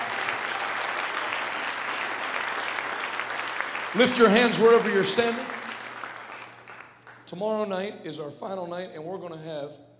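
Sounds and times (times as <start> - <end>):
audience hand clapping applause: 0.0 - 7.6
speech: 3.9 - 5.6, 7.3 - 9.9.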